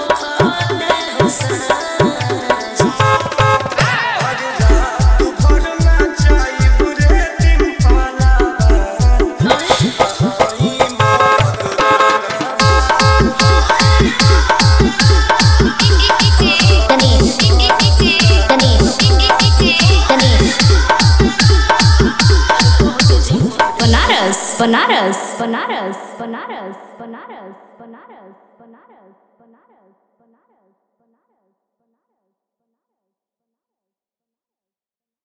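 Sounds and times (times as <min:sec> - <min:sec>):
Bhojpuri DJ remix song: 0:00.0 - 0:26.2.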